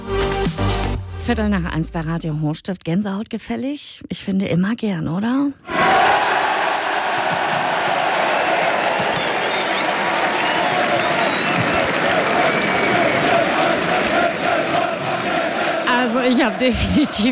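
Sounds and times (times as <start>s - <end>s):
speech: 1.3s - 6.1s, 16.2s - 17.3s
scattered shouts: 5.7s - 9.1s, 10.2s - 17.3s
football fans crowd cheering and applauding: 5.7s - 17.3s.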